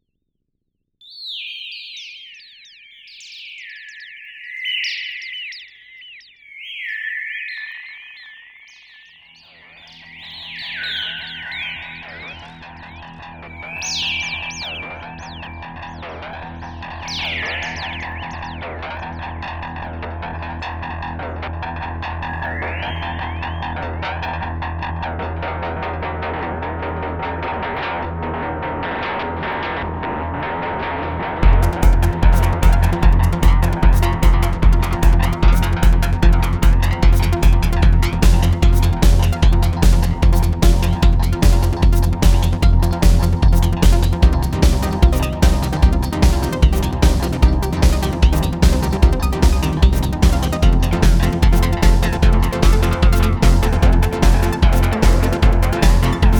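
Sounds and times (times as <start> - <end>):
electronic bird sounds: 1.0 - 24.6, 31.4 - 56.3.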